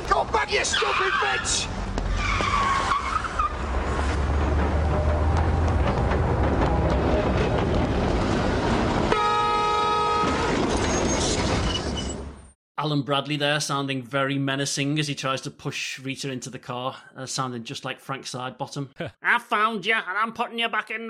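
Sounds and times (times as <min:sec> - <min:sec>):
speech: 0:00.2 - 0:01.9, 0:12.8 - 0:21.0
tram wheels screeching: 0:00.6 - 0:04.2, 0:10.3 - 0:12.5
tram rumbling past: 0:03.4 - 0:12.3
tram horn blast: 0:09.1 - 0:10.8.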